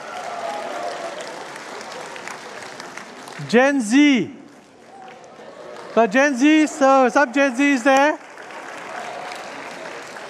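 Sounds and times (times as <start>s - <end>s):
church audience clapping: 0.0s - 10.2s
speech: 3.4s - 4.4s, 6.0s - 8.2s.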